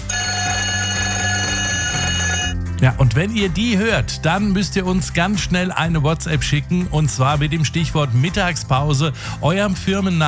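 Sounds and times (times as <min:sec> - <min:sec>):
electric break bell played as a contest signal on a Frankfurt radio station: 0:00.0 - 0:02.6
speech: 0:02.8 - 0:10.2.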